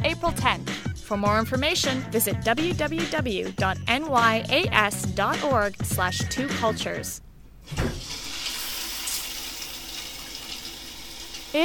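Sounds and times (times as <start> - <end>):
speech: 0.3 - 7.9
shower running in a bathroom: 7.7 - 11.6.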